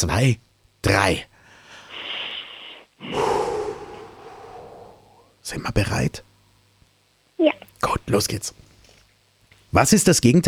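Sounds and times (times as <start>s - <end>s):
speech: 0.0s - 1.3s, 5.5s - 6.3s, 7.4s - 8.7s, 9.7s - 10.4s
deep breath in and out: 1.4s - 5.4s.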